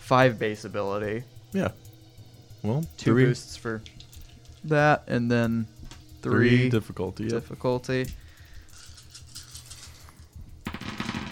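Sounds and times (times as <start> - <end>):
speech: 0.1 - 1.9, 2.6 - 4.0, 4.6 - 8.2
many dice being rolled: 10.7 - 11.3.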